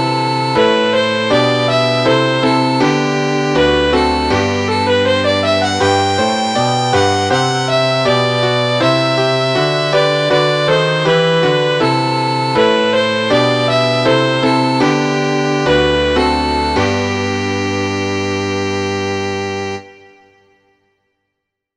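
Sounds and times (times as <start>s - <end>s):
piano melody: 0.0s - 20.3s.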